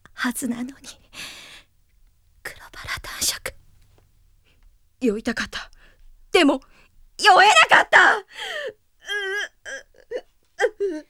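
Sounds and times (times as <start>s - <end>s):
speech: 0.2s - 1.3s, 5.0s - 5.7s, 6.4s - 8.7s
person sobbing in a costume-drama audio play: 7.5s - 11.0s.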